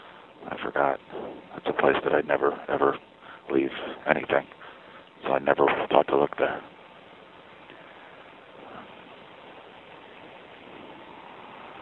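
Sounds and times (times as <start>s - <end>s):
speech: 0.6s - 4.6s, 5.2s - 6.7s
rain: 9.5s - 11.7s.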